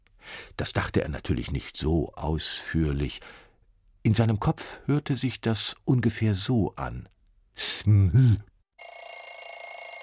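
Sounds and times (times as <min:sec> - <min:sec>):
speech: 0:00.6 - 0:03.4, 0:04.0 - 0:08.5
alarm clock ringing: 0:08.8 - 0:10.0.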